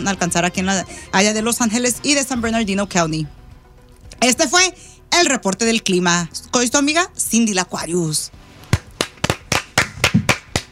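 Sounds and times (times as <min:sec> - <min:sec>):
speech: 0:00.0 - 0:03.4, 0:04.2 - 0:08.4
hand clapping: 0:08.7 - 0:10.7.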